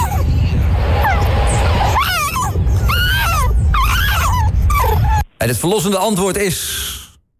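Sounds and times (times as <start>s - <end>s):
low rumble: 0.0s - 5.4s
young fox cub screaming call: 1.0s - 5.3s
speech: 5.4s - 6.8s.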